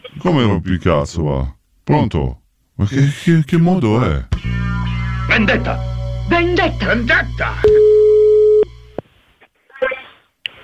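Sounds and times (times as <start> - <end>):
speech: 0.2 - 4.3, 5.3 - 7.8
telephone busy tone after call drops: 7.6 - 8.7.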